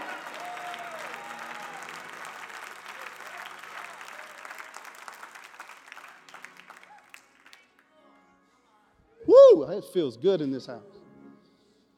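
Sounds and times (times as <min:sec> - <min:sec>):
audience clapping hands: 0:00.0 - 0:07.9
speech: 0:09.6 - 0:11.0.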